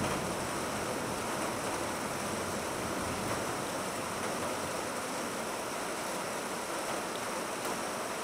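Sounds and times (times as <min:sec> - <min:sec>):
thunder: 0:00.0 - 0:00.5
rain on a veranda: 0:00.0 - 0:08.2.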